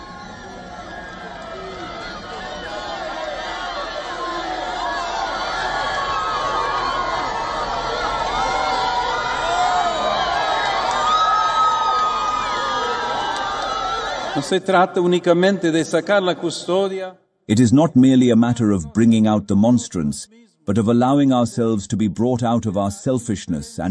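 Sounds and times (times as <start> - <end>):
children shouting excitedly: 0.0 - 14.4
large crowd cheering and chattering: 0.0 - 14.5
speech: 14.4 - 23.9.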